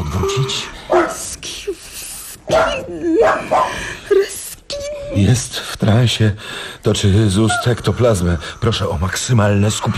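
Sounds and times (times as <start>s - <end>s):
speech: 0.2s - 1.3s, 5.2s - 9.9s
poodle barking: 0.9s - 1.3s, 2.5s - 3.8s.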